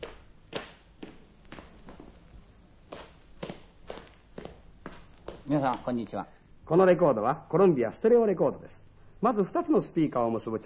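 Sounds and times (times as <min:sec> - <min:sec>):
footsteps walking on a stereo demonstration record: 0:00.0 - 0:06.2
speech: 0:05.5 - 0:10.6.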